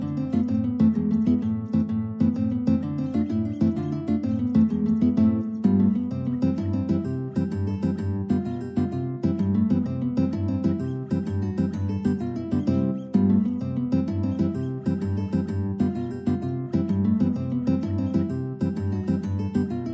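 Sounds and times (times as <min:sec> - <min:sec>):
tarantella guitar duet: 0:00.0 - 0:19.9.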